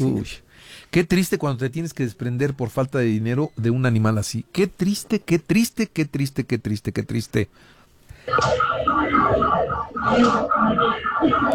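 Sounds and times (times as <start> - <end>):
speech: 0.0 - 11.5
earthquake alarm siren wailing: 8.3 - 11.5.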